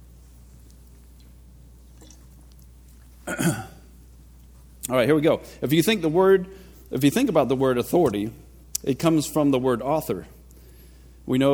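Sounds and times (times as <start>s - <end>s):
person drinking water, swallowing: 1.9s - 3.7s
speech: 3.3s - 3.7s, 4.9s - 10.4s, 11.3s - 11.5s.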